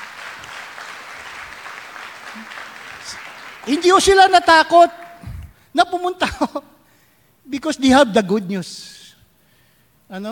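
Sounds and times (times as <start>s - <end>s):
church congregation applauding: 0.0s - 5.4s
speech: 2.4s - 5.0s, 5.8s - 6.7s, 7.5s - 9.0s, 10.1s - 10.3s.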